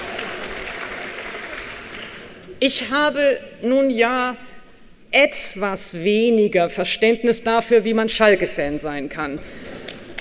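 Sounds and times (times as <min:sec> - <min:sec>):
audience applause during a speech: 0:00.0 - 0:02.3
speech: 0:02.6 - 0:04.5, 0:05.1 - 0:09.6.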